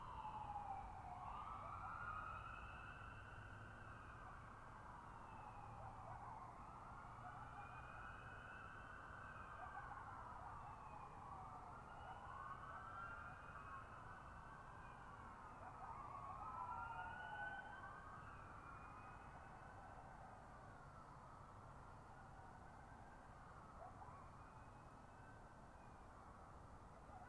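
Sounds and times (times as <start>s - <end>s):
coyotes in a valley: 0.0s - 27.2s
sirens in a valley: 0.0s - 27.2s.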